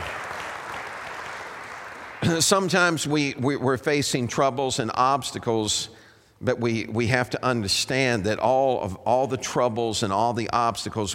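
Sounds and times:
audience hand clapping: 0:00.0 - 0:02.4
speech: 0:02.2 - 0:11.1.

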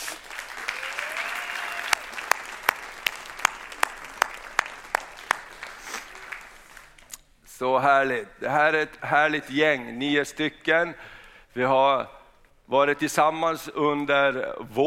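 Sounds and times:
audience applause: 0:00.0 - 0:07.1
speech: 0:07.6 - 0:14.8.

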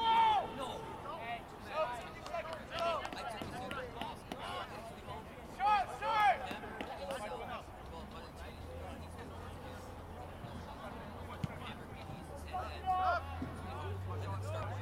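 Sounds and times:
people shouting: 0:00.0 - 0:00.9
crowd murmur: 0:00.0 - 0:14.8
people talking and calling out at a high school soccer game: 0:00.0 - 0:14.8.

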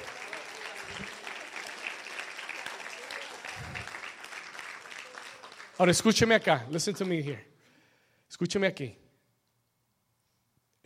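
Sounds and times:
audience applause: 0:00.0 - 0:07.2
speech: 0:05.8 - 0:07.5, 0:08.4 - 0:09.0.

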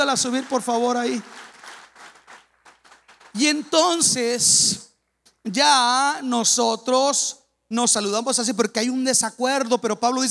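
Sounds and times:
speech: 0:00.0 - 0:01.5, 0:03.4 - 0:10.2
applause: 0:00.0 - 0:04.2.

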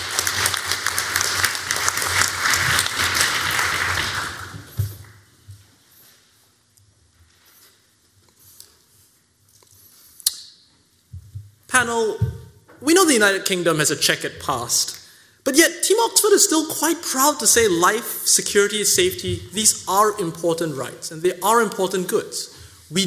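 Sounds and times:
audience applause: 0:00.0 - 0:04.8
speech: 0:11.8 - 0:12.2, 0:12.8 - 0:23.0.

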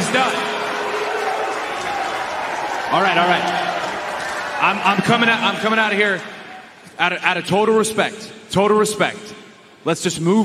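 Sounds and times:
audience applause: 0:00.0 - 0:06.8
speech: 0:02.9 - 0:03.7, 0:04.6 - 0:10.4.

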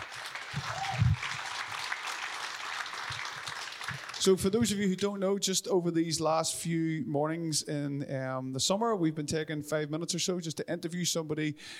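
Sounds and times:
round of applause: 0:00.0 - 0:04.8
speech: 0:04.2 - 0:11.7.

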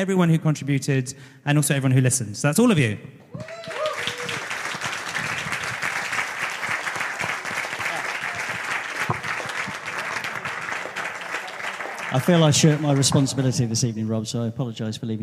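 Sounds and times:
speech: 0:00.0 - 0:03.7, 0:12.1 - 0:15.2
audience applause: 0:03.4 - 0:13.8.

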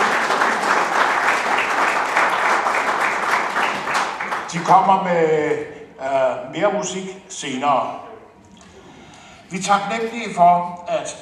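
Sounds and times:
audience applause for brass musicians: 0:00.0 - 0:04.9
speech: 0:04.6 - 0:08.0, 0:09.5 - 0:11.2.

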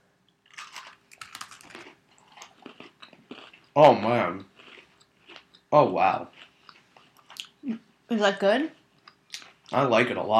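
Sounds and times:
Oreo cookie crunching and chewing during a taste test: 0:00.4 - 0:07.6
speech: 0:03.8 - 0:04.5, 0:05.7 - 0:06.4, 0:07.6 - 0:08.8, 0:09.7 - 0:10.3.

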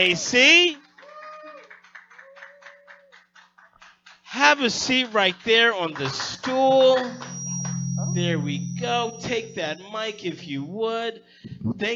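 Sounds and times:
speech: 0:00.0 - 0:00.8, 0:04.4 - 0:07.4, 0:08.2 - 0:11.9
small live audience applause: 0:01.0 - 0:04.3.

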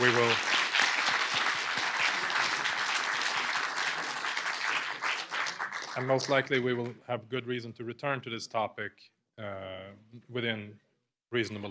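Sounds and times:
audience applause for two panelists: 0:00.0 - 0:06.6
speech: 0:06.0 - 0:11.6.

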